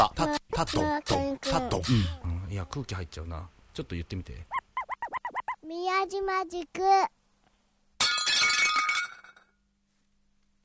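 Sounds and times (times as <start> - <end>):
speech: 0.0 - 4.6, 5.7 - 7.2
plate breaking: 8.0 - 9.6.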